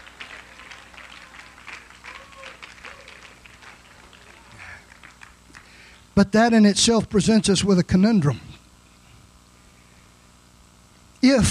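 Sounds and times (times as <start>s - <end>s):
audience clapping hands in praise: 0.0s - 5.9s
speech: 6.2s - 8.5s, 11.2s - 11.5s.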